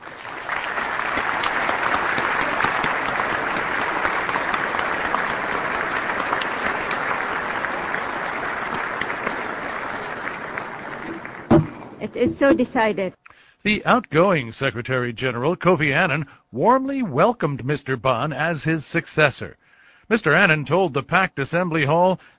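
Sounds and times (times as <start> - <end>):
United Nations General Assembly clapping to adopt a resolution by acclamation: 1.0 - 13.0
speech: 12.2 - 22.3.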